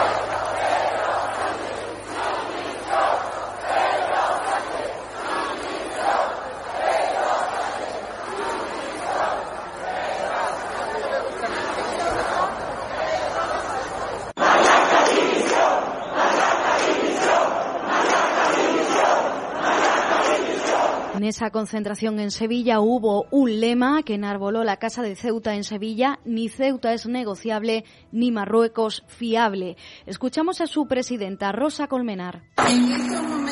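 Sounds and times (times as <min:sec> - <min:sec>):
protest crowd shouting for resignation: 0:00.0 - 0:21.2
speech: 0:21.4 - 0:33.5.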